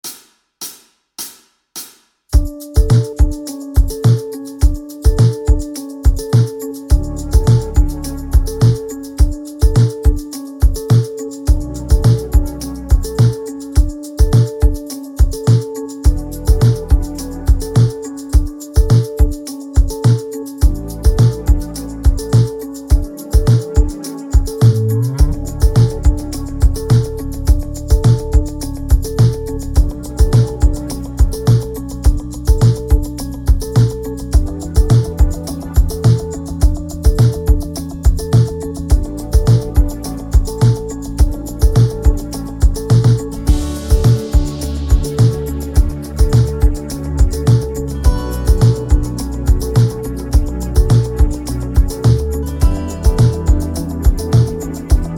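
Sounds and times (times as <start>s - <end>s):
instrumental music: 2.3s - 55.1s.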